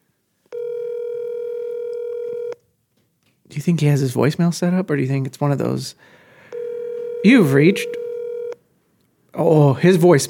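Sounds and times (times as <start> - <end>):
electronic phone ring tone during a call: 0.5 - 2.6, 6.5 - 8.6
speech: 3.6 - 6.2, 7.2 - 8.0, 9.4 - 10.2.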